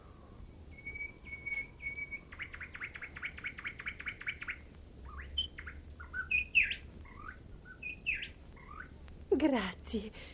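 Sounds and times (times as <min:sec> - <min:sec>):
nightingale singing: 0:00.0 - 0:09.0
speech: 0:09.4 - 0:10.3.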